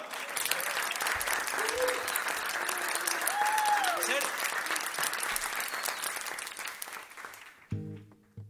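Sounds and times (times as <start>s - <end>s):
audience applause: 0.0s - 7.7s.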